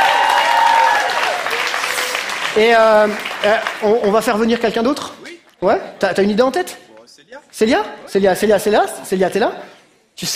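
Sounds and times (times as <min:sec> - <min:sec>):
cheering voices and whoops: 0:00.0 - 0:02.2
loud vocal shout: 0:00.0 - 0:02.2
audience clapping: 0:00.0 - 0:04.8
speech: 0:02.6 - 0:10.3.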